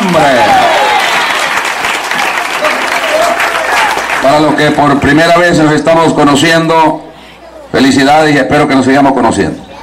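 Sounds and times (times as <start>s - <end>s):
audience applause: 0.0s - 4.8s
speech: 4.3s - 7.1s, 7.7s - 9.6s.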